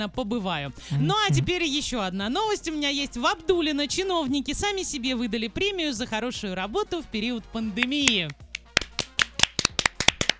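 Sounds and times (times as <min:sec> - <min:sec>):
speech: 0:00.0 - 0:08.4
sharp hand claps of a small group applauding: 0:07.8 - 0:10.3.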